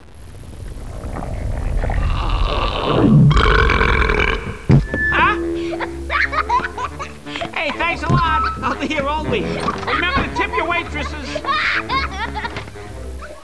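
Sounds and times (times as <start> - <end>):
person belching: 2.0 - 6.1
laughter: 5.2 - 13.4.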